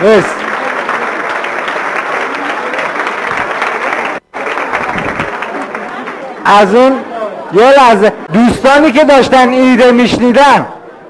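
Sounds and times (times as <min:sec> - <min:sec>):
speech: 0:00.0 - 0:00.5, 0:06.5 - 0:10.8
audience applauding themselves: 0:00.0 - 0:06.4.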